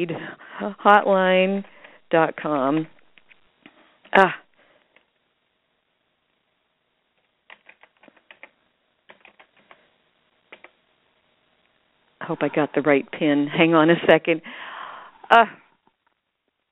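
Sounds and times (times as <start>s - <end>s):
speech: 0.0s - 3.0s, 4.1s - 4.4s, 12.3s - 14.7s, 15.3s - 15.6s
fast typing on a computer keyboard during a sign-in: 7.5s - 9.8s, 10.5s - 10.8s.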